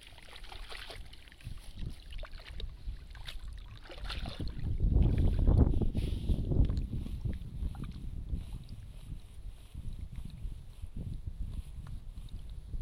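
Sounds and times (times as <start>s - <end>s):
splashing and sloshing in a flooded rice nursery bed: 0.0s - 9.0s.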